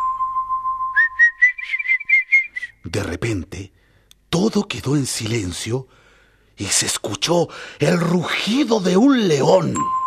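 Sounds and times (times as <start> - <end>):
person whistling an imitation of little birds chirping: 0.0 - 2.8
speech: 2.9 - 6.0, 6.6 - 10.0.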